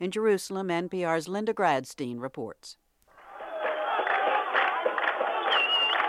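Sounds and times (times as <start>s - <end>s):
speech: 0.0s - 2.8s
crowd cheering exiled Palestinians crossing the Allenby Bridge into the West Bank: 3.2s - 6.0s.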